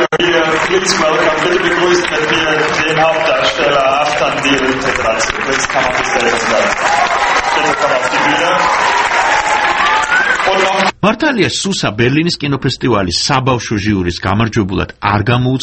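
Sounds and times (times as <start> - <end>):
cinema audience in the 2000-seat Zoo Palast hall at the Berlin film festival clapping: 0.0 - 11.0
speech: 0.2 - 9.1, 10.5 - 15.6
voices and whoops: 5.4 - 10.9.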